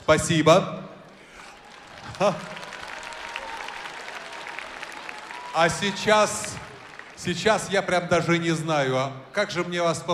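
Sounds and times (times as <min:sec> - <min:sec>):
speech: 0:00.1 - 0:00.8, 0:02.2 - 0:02.5, 0:05.6 - 0:06.6, 0:07.2 - 0:10.1
audience applause: 0:01.2 - 0:07.9.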